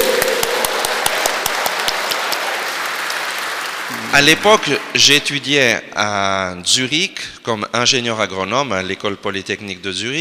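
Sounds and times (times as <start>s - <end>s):
audience applause: 0.0s - 5.2s
speech: 4.1s - 10.1s.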